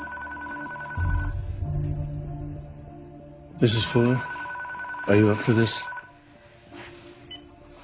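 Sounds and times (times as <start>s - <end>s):
telephone ringing with electronic tone: 0.0s - 1.4s, 3.7s - 6.2s
speech: 3.6s - 4.3s, 5.0s - 5.8s.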